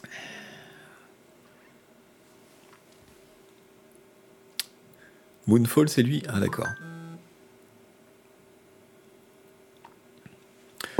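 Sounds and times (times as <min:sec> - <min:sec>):
speech: 0:05.5 - 0:06.9
phone beeping: 0:06.4 - 0:07.2.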